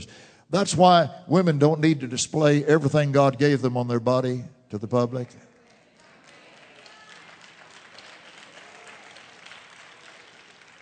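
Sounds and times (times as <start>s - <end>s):
speech: 0.0s - 5.5s
weak thin scattered hand clapping: 5.7s - 10.8s.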